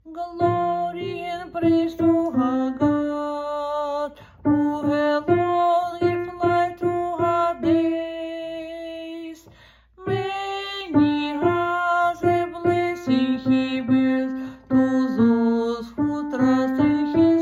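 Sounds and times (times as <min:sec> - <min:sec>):
alto voice singing: 0:00.0 - 0:17.3.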